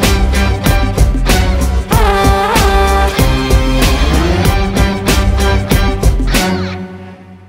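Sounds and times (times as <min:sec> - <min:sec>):
background music ringtone: 0:00.1 - 0:06.9.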